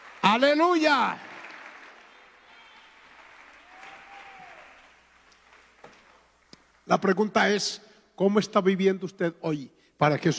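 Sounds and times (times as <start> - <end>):
audience applause: 0.0 - 6.8
speech: 0.3 - 1.3, 6.9 - 10.3.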